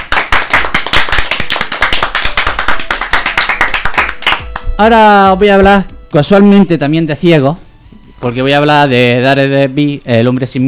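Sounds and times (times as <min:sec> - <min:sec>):
crowd applauding: 0:00.0 - 0:04.8
speech: 0:04.8 - 0:07.6, 0:08.2 - 0:10.6.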